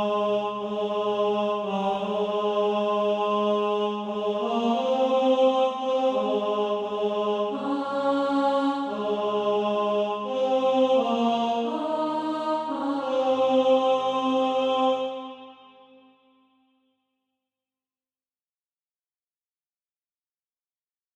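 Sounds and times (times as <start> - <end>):
tenor SATB practice part: 0.0 - 15.5.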